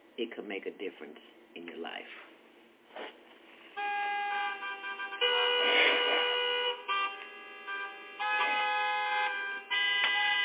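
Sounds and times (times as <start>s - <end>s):
traffic rumble: 0.0s - 10.4s
speech: 0.2s - 2.3s
car horns honking in traffic: 3.7s - 10.4s.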